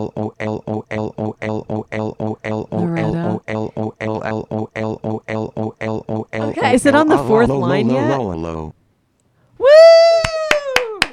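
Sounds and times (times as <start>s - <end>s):
speech: 0.0s - 8.8s
one person clapping hands: 10.2s - 11.1s.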